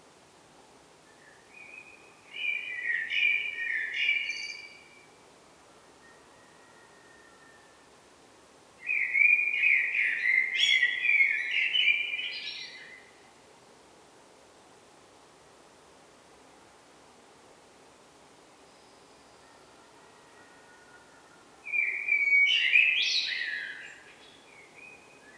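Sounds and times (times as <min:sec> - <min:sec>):
Eurasian blackbird Turdus merula song: 0:01.1 - 0:04.9, 0:08.8 - 0:13.1, 0:21.6 - 0:25.3.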